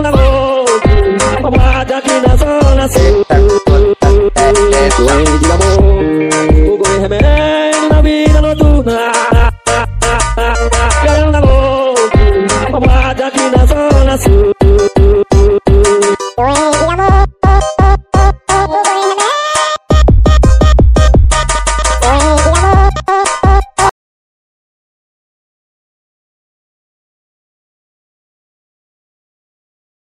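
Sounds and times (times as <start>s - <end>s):
funk brega music: 0.0s - 23.9s.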